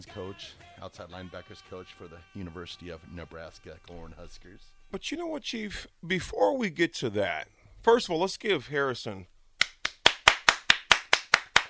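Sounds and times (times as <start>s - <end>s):
speech: 0.0s - 9.3s
crisp hand claps: 9.6s - 11.6s.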